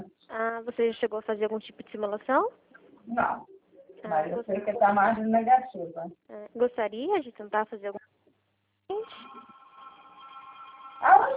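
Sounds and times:
speech: 0.6s - 8.0s
telephone ringing: 9.0s - 11.3s.

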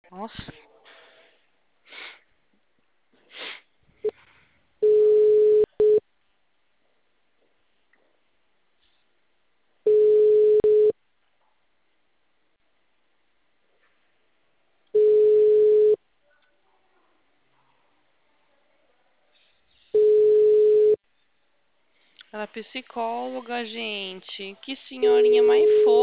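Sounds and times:
speech: 0.1s - 0.7s, 22.4s - 26.0s
ringback tone of an unanswered telephone call: 4.8s - 6.0s, 9.9s - 10.9s, 15.0s - 16.0s, 20.0s - 21.0s.

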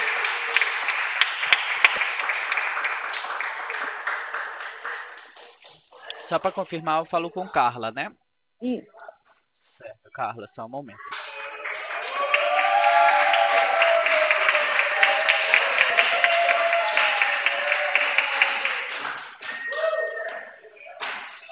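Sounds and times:
clapping in the room: 0.0s - 6.4s, 11.0s - 21.5s
speech: 6.3s - 9.0s, 10.2s - 11.0s.

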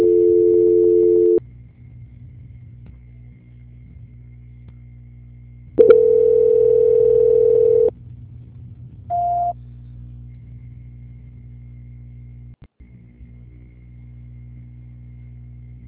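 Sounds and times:
telephone call transfer tones: 0.0s - 1.4s, 5.8s - 7.9s, 9.1s - 9.5s
low telephone line hum: 0.0s - 15.8s.

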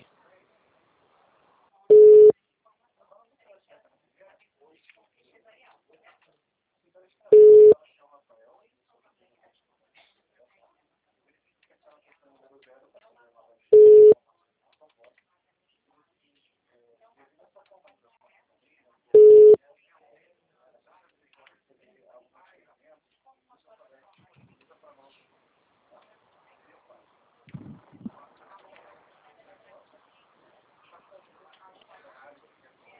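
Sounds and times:
telephone line beeps: 1.9s - 2.3s, 7.4s - 7.8s, 13.8s - 14.2s, 19.2s - 19.6s.

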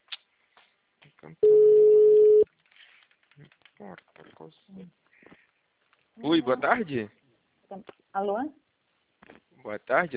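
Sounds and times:
speech: 1.2s - 2.0s, 3.4s - 5.5s, 6.2s - 8.6s, 9.6s - 10.1s
telephone ringback tone of an unanswered call: 1.4s - 2.4s.

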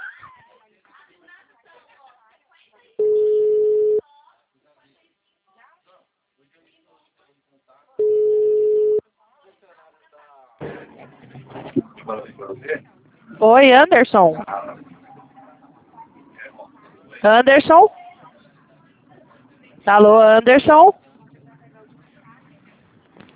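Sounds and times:
telephone ringback tone: 3.0s - 4.0s, 8.0s - 9.0s
speech: 12.4s - 14.5s, 17.2s - 18.0s, 19.9s - 21.0s.

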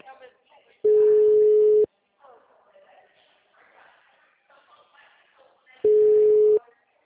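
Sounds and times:
person talking: 0.9s - 1.7s
telephone ringback tones of an unanswered call: 0.9s - 1.9s, 5.9s - 6.6s.

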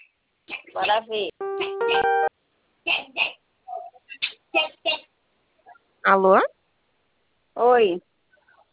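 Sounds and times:
speech: 1.0s - 2.3s, 6.1s - 6.5s, 7.8s - 8.1s
phone keypad tone from pressing zero on an automated credit-approval call: 1.4s - 2.3s.

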